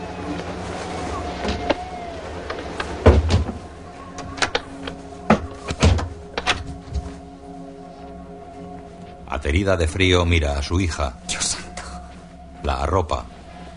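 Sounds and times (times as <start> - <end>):
steady low hum: 0.0 - 13.7
bedroom window being shut: 1.4 - 7.0
speech: 9.4 - 11.4, 12.7 - 13.3.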